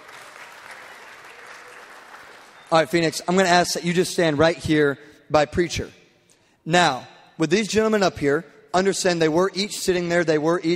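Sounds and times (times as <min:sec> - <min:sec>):
audience clapping: 0:00.0 - 0:03.0
speech: 0:02.7 - 0:06.0, 0:06.6 - 0:10.7.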